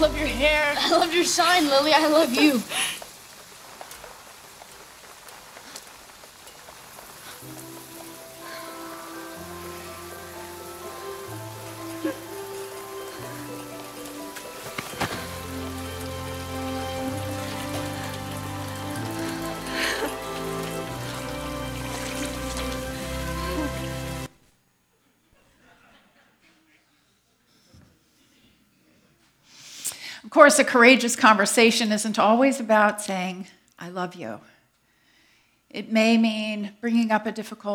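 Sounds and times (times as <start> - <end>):
sustained musical notes: 0.0 - 1.9, 7.4 - 24.3
speech: 0.0 - 3.0, 30.4 - 34.5, 35.7 - 37.7
rain falling: 0.0 - 24.4.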